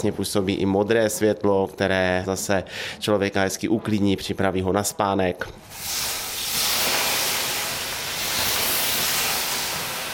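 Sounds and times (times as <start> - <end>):
speech: 0.0 - 6.2
steam: 5.6 - 10.1
water poured on hot sauna stove: 5.7 - 10.1.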